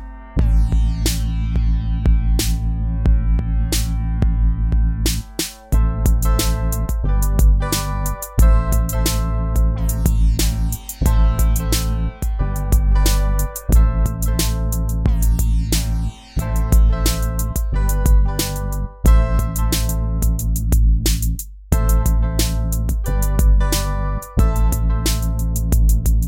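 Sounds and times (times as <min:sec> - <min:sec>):
hip-hop beat: 0:00.0 - 0:26.2.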